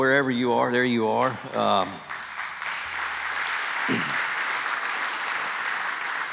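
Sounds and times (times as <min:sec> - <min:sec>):
speech: 0:00.0 - 0:02.2
audience applause for a man coming up to speak at a lunch gathering: 0:01.6 - 0:06.3.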